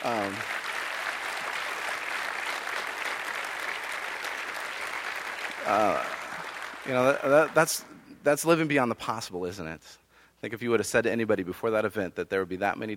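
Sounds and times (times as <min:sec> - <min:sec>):
speech: 0:00.0 - 0:00.6, 0:05.7 - 0:06.1, 0:06.9 - 0:12.9
crowd applauding: 0:00.0 - 0:07.9.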